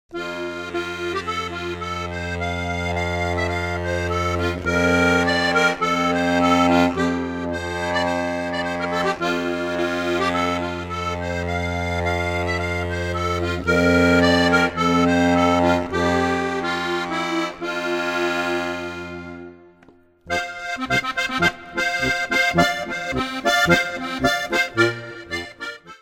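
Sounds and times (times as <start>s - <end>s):
highland polka music: 0.1s - 26.0s.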